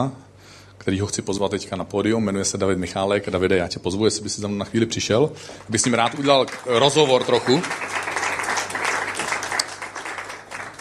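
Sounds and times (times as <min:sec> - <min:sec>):
speech: 0:00.0 - 0:00.2, 0:00.8 - 0:08.0
audience applauding: 0:05.7 - 0:10.7.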